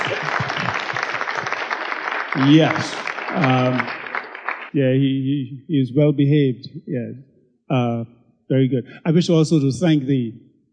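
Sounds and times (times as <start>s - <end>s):
laughter: 0.0s - 4.2s, 4.8s - 7.1s, 7.7s - 10.3s
audience applause: 0.0s - 4.8s
speech: 2.4s - 4.0s, 4.7s - 10.5s.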